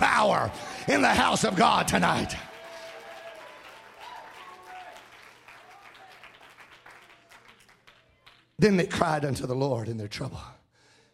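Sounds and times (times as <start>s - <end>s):
audience clapping: 0.0s - 8.7s
speech: 0.2s - 2.5s, 8.6s - 10.6s.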